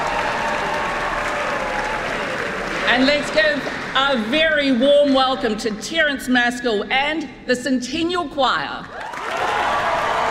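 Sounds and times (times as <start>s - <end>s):
audience applause at a concert after a trumpet solo: 0.0s - 4.8s, 8.8s - 10.2s
speech: 2.9s - 9.0s.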